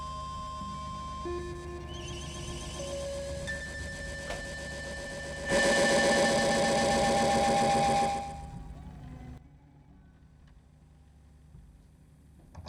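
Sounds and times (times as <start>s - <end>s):
tape echo effect from Grundig TK 747 tape recorder loudspeaker: 0.0s - 9.4s.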